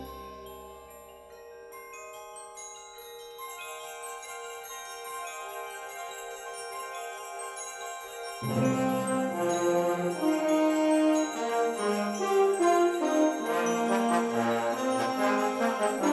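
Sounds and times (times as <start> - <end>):
fanfare: 8.4 - 16.1.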